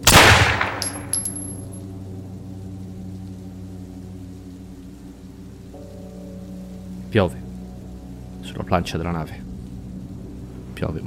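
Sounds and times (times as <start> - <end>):
gunshot: 0.0 - 1.2
speech: 7.1 - 7.4, 8.5 - 9.5, 10.8 - 11.0.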